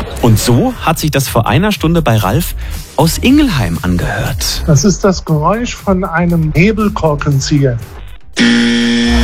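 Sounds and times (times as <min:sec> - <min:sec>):
speech: 0:00.2 - 0:08.8
Zonk buzzer from a radio guessing game signalling a wrong answer: 0:08.4 - 0:09.2.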